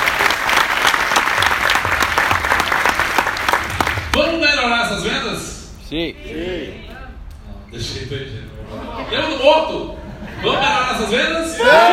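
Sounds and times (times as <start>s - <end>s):
crowd applauding: 0.0s - 4.4s
speech: 5.9s - 6.9s, 7.7s - 11.9s
laughter: 8.6s - 11.4s.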